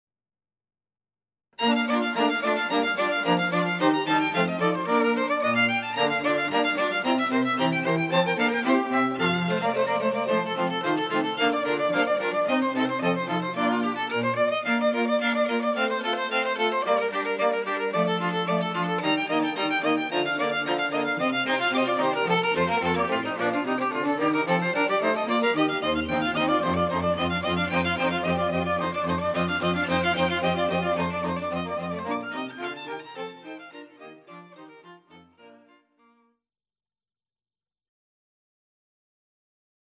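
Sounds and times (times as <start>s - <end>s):
string quartet: 1.6s - 35.8s.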